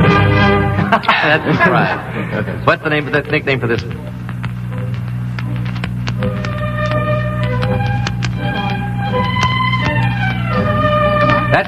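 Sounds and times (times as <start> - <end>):
steady low hum: 0.0 - 11.6
laughter: 0.8 - 2.9
speech: 1.3 - 4.2
clock mechanism ticking: 3.4 - 11.6.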